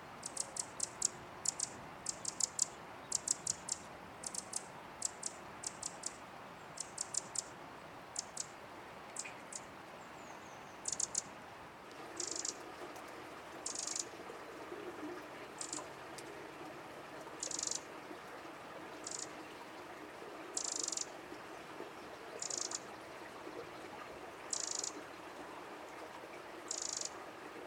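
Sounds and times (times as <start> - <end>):
constant low hiss: 0.0 - 27.6
Eurasian wren calls: 0.2 - 6.2, 6.8 - 7.5, 8.1 - 8.6, 9.2 - 11.3, 12.2 - 12.6, 13.6 - 14.1, 15.6 - 15.8, 17.4 - 17.9, 19.0 - 19.3, 20.6 - 21.1, 22.4 - 22.9, 24.5 - 25.0, 26.7 - 27.2.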